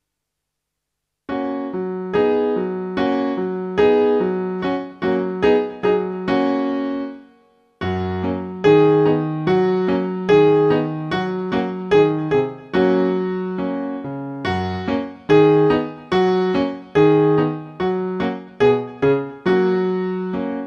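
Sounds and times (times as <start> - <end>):
instrumental music: 1.3 - 20.6.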